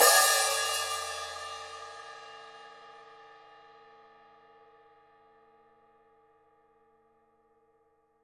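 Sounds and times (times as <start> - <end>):
open hi-hat: 0.0 - 2.0.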